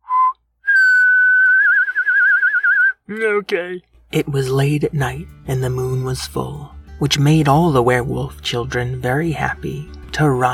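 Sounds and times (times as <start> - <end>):
person whistling: 0.0 - 3.0
speech: 3.1 - 10.5.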